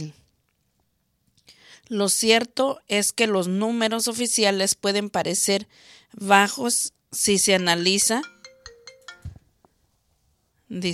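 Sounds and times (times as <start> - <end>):
speech: 0.0 - 0.2, 1.9 - 8.4, 10.7 - 10.9
phone ringtone during broadcast: 7.6 - 9.5.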